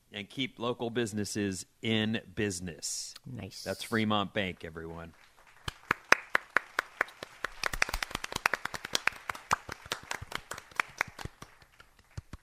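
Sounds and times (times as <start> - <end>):
speech: 0.2 - 5.3
soft polite golf clapping from a few people: 5.6 - 12.4.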